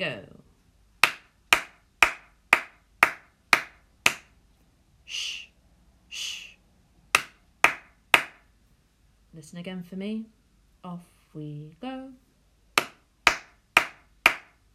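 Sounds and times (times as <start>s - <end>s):
speech: 0.0s - 0.3s, 9.4s - 12.3s
hands clapping a rhythm: 1.0s - 4.3s, 7.2s - 8.4s, 12.8s - 14.7s.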